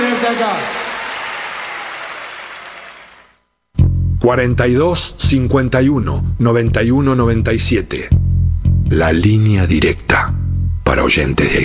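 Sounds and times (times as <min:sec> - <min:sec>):
audience applause: 0:00.0 - 0:03.4
speech: 0:00.3 - 0:00.8, 0:04.2 - 0:08.2, 0:08.9 - 0:10.3, 0:10.9 - 0:11.6.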